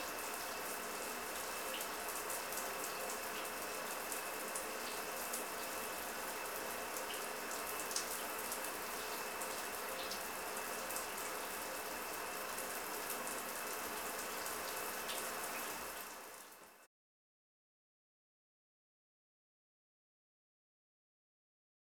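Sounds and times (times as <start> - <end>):
shower running: 0.0 - 16.9.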